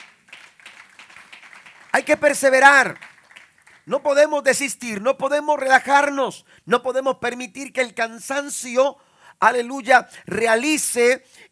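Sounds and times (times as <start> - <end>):
audience applauding: 0.0 - 4.2
speech: 2.0 - 3.1, 3.9 - 11.5.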